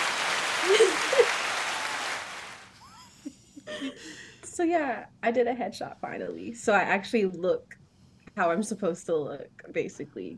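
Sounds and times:
round of applause: 0.0s - 2.7s
laughter: 0.0s - 4.1s
vocal whoops: 0.6s - 2.5s
speech: 3.8s - 7.8s, 8.4s - 10.3s.

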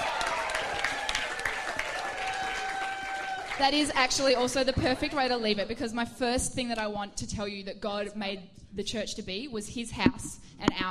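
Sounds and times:
audience applause for a guest at a church gathering: 0.0s - 4.3s
speech: 3.6s - 10.9s.

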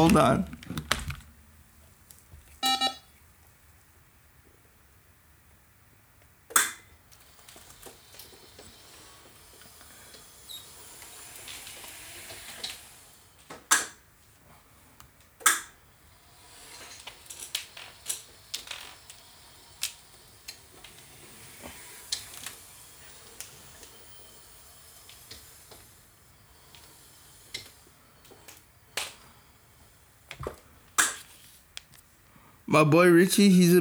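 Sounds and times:
speech: 0.0s - 0.6s, 32.7s - 33.7s
chair moving as speaker gets up: 7.2s - 32.0s.

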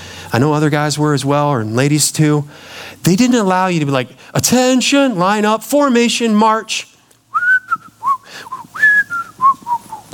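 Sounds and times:
speech: 0.3s - 6.9s
person whistling a TV theme melody: 7.3s - 10.1s.

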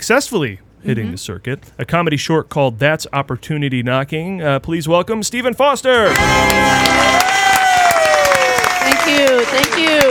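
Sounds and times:
speech: 0.0s - 7.4s
crowd applauding: 6.0s - 10.0s
audience whoops and cheers: 6.1s - 10.0s.

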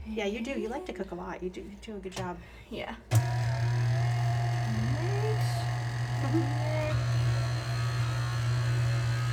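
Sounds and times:
speech: 0.1s - 3.8s, 6.2s - 6.7s
kitchen mixer motor humming during home baking: 3.2s - 9.3s.

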